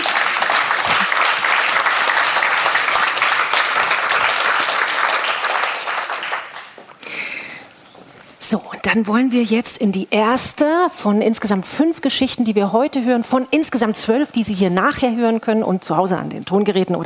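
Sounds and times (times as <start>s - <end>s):
audience applause: 0.0s - 6.8s
speech: 8.5s - 17.0s.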